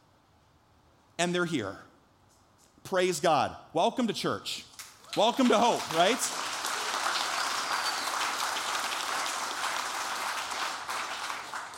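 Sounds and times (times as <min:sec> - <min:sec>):
speech: 0:01.2 - 0:01.9, 0:02.8 - 0:06.5
audience clapping: 0:04.8 - 0:11.7.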